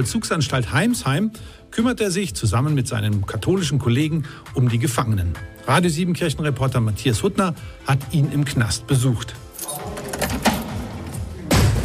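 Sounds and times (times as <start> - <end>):
speech: 0.0 - 10.5
heavy thick door shutting at Heimsheim prison: 9.6 - 11.8.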